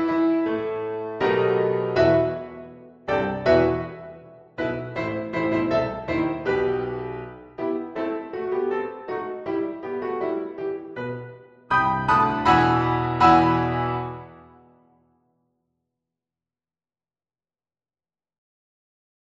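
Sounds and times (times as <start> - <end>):
solo piano: 0.0 - 14.9.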